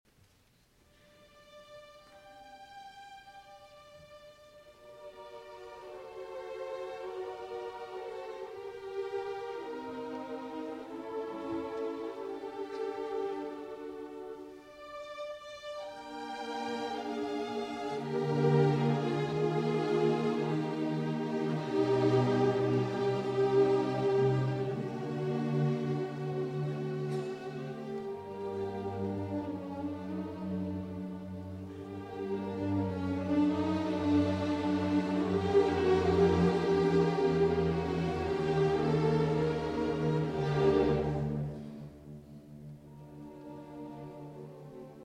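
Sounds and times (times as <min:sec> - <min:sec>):
live cello concerto in D minor, intermezzo: 0:00.5 - 0:45.0.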